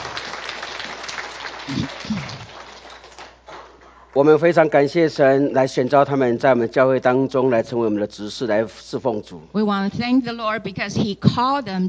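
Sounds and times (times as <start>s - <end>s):
church congregation applause: 0.0s - 4.3s
speech: 1.7s - 2.4s, 4.2s - 11.8s.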